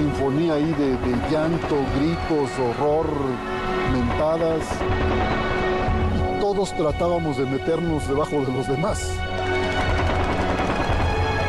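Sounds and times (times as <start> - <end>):
speech: 0.2 - 5.6, 6.5 - 9.4
machine gun fire: 9.6 - 11.3.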